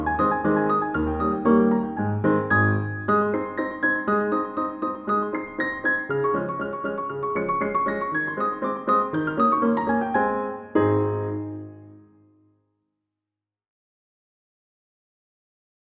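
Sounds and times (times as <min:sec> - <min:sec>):
Christmas song: 0:00.0 - 0:12.2.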